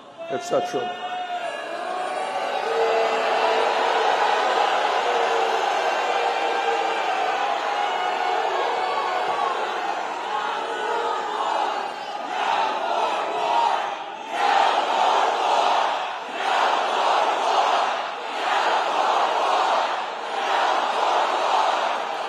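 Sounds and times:
crowd chanting: 0:00.8 - 0:22.2.

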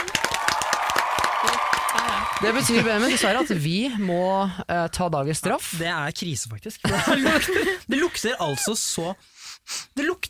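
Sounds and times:
applause: 0:00.0 - 0:03.2
laughter: 0:02.3 - 0:04.2, 0:06.8 - 0:08.1
speech: 0:02.3 - 0:10.2.

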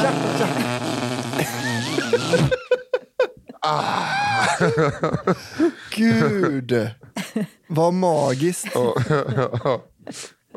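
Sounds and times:
person imitating a fart: 0:00.0 - 0:02.7
person laughing: 0:00.0 - 0:06.6, 0:08.6 - 0:10.5
speech: 0:03.7 - 0:10.5.

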